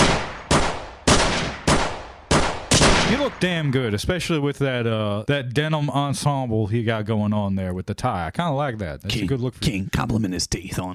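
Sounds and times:
gunshots fired at the far wall of a house: 0.0s - 3.9s
speech: 3.2s - 10.9s.

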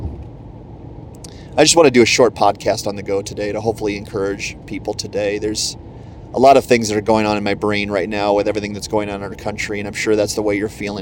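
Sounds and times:
car engine and road hum while driving: 0.0s - 11.0s
speech: 1.6s - 11.0s.

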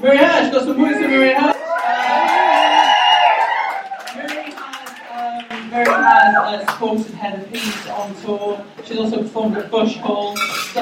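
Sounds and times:
speech: 0.0s - 0.8s, 7.2s - 10.8s
scattered clapping: 0.6s - 6.0s
audience cheering with whoops and shouts: 1.4s - 6.6s.

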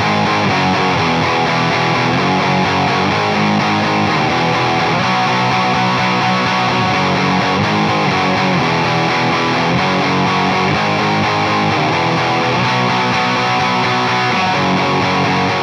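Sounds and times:
heavily distorted electric guitar through a cranked Fender Deluxe amp: 0.0s - 15.6s.

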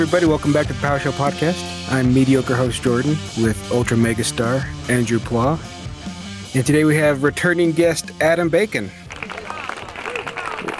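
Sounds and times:
speech: 0.0s - 5.8s, 6.5s - 9.0s
crowd applause and cheering: 9.0s - 10.7s.

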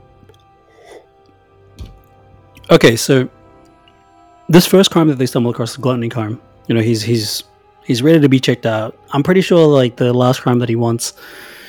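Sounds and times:
person sipping wine: 0.7s - 1.1s
speech: 2.7s - 3.4s, 4.5s - 11.6s.

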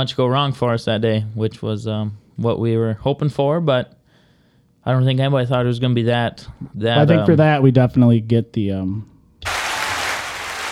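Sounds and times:
speech: 0.0s - 4.0s, 4.8s - 9.1s
applause for the wrestlers' section title: 9.4s - 10.7s.

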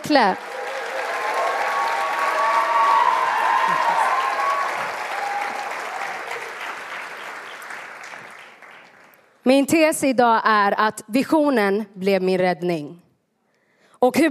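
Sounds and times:
speech: 0.0s - 0.5s, 9.5s - 13.0s, 14.0s - 14.2s
audience applause: 0.0s - 9.2s.

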